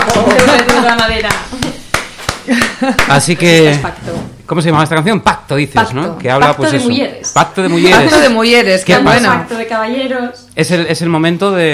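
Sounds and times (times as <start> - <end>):
audience clapping in a steady rhythm: 0.0 - 3.4
speech: 0.1 - 1.6, 2.8 - 11.7.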